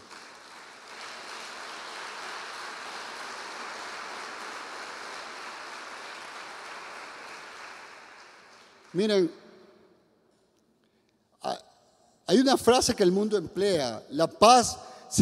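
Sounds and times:
audience applause: 0.0 - 8.9
speech: 8.9 - 9.4, 12.3 - 15.2.

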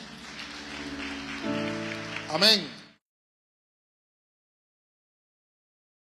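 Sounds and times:
audience clapping: 0.0 - 3.0
speech: 2.3 - 2.8.

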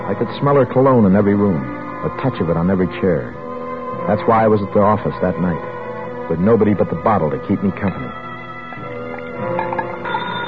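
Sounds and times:
speech: 0.2 - 3.4, 4.0 - 5.7, 6.3 - 8.2
telephone ringing: 8.7 - 10.4.

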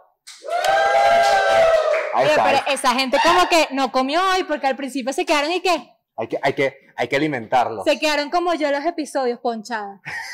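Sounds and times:
live crowd applause and cheering: 0.3 - 3.5
speech: 2.2 - 10.3.

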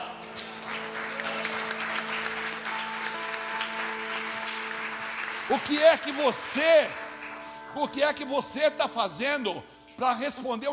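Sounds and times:
audience applauding: 0.0 - 8.4
speech: 5.5 - 7.0, 7.7 - 10.7.

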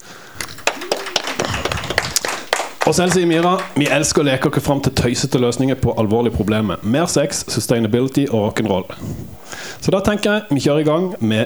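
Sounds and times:
audience applause: 0.0 - 9.0
laughter: 0.0 - 11.4
speech: 2.9 - 11.4.

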